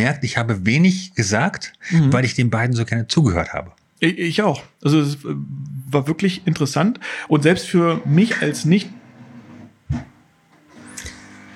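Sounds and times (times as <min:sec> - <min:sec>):
speech: 0:00.0 - 0:09.0
coffee machine rinsing itself: 0:07.3 - 0:09.8, 0:10.6 - 0:11.5.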